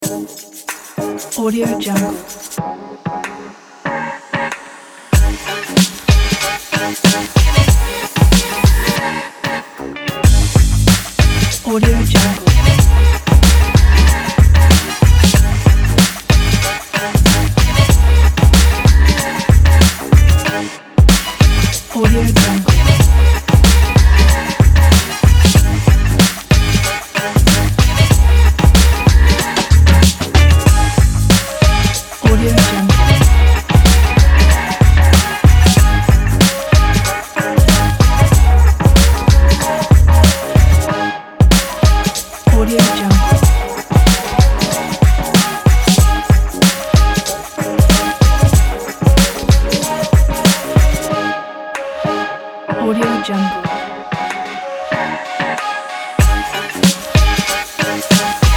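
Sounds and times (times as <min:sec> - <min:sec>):
summer hip hop music: 0:00.0 - 0:58.5.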